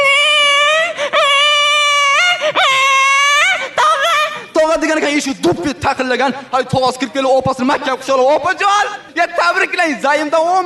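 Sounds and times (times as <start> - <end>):
baby crying: 0.0 - 4.6
speech: 5.2 - 10.6.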